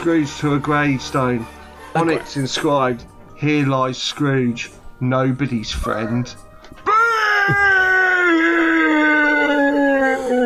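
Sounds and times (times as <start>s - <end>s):
speech: 0.0s - 6.8s, 7.5s - 7.7s
ghostly spectre screaming in someone's face: 6.8s - 10.4s.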